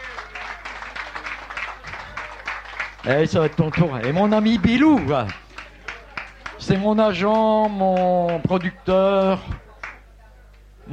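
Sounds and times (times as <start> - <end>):
audience applause: 0.0 - 10.0
speech: 3.0 - 5.4, 6.6 - 9.6.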